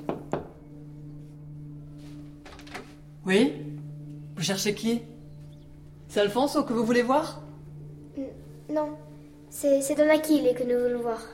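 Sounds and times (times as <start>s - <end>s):
low steady hum: 0.0s - 11.3s
knocks on a door: 0.1s - 0.6s
speech: 3.2s - 3.7s, 4.4s - 5.1s, 6.1s - 7.4s, 9.6s - 11.3s.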